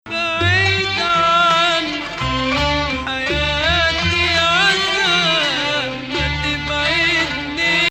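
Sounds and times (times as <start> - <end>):
Bayati Nahawand maqam music: 0.0 - 7.8.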